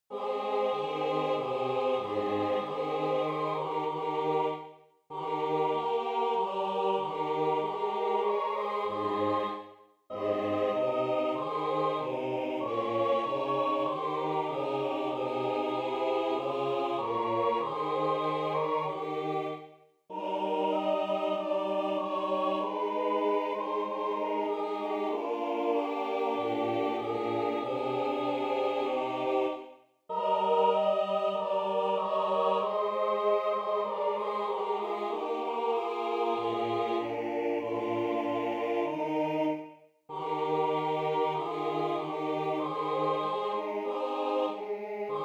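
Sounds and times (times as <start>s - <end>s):
SATB four-part choir singing: 0.0s - 45.2s.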